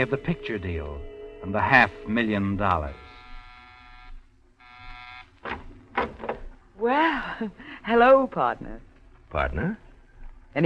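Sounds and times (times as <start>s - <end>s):
speech: 0.0s - 3.0s, 5.4s - 6.2s, 6.8s - 9.8s
apartment door buzzer: 2.7s - 5.5s.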